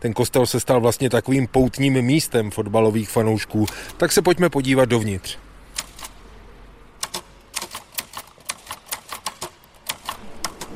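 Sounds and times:
speech: 0.0s - 5.5s
typewriter clacking inside a church: 7.0s - 10.7s.

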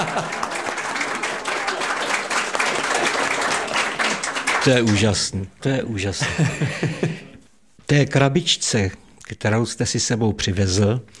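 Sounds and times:
speech: 0.0s - 0.4s, 4.6s - 7.3s, 7.9s - 11.1s
laughter: 0.0s - 4.5s, 6.2s - 7.4s
audience applause: 0.0s - 5.2s.

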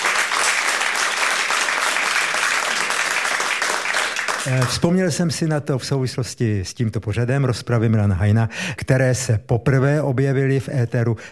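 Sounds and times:
audience applause: 0.0s - 4.8s
speech: 4.4s - 11.3s.

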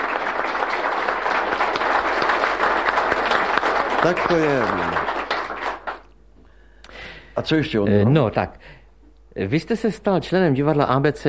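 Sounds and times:
audience applause: 0.0s - 6.1s
speech: 4.0s - 5.1s, 7.4s - 8.8s, 9.4s - 11.2s.

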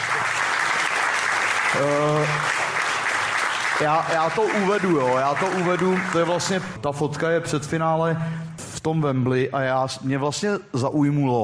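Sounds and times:
audience applause: 0.0s - 7.4s
speech: 1.7s - 2.6s, 3.8s - 11.4s.

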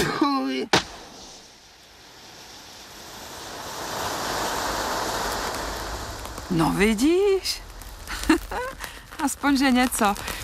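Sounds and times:
firewood catching fire in a stove: 0.0s - 10.4s
speech: 6.5s - 7.7s, 9.2s - 10.4s.

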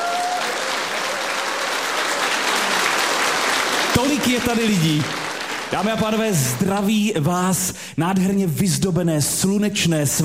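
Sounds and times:
audience applause: 0.0s - 6.7s
speech: 4.1s - 10.2s.

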